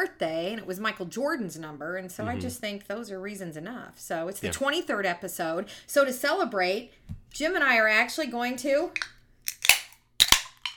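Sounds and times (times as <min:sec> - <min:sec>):
speech: 0:00.0 - 0:09.2
beer can being cracked open: 0:09.0 - 0:10.7.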